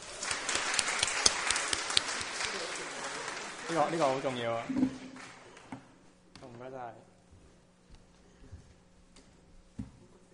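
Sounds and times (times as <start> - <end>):
audience applause: 0.0 - 5.8
speech: 3.7 - 4.9, 6.7 - 7.1.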